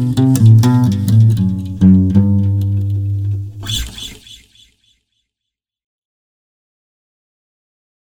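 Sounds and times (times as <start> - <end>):
acoustic guitar: 0.0 - 4.1.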